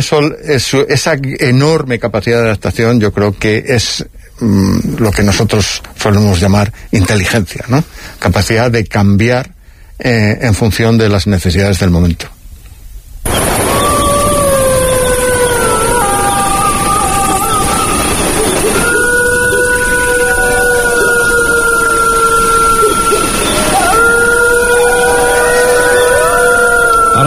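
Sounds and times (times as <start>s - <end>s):
speech: 0.0s - 12.4s
pack of wolves howling: 13.3s - 27.2s.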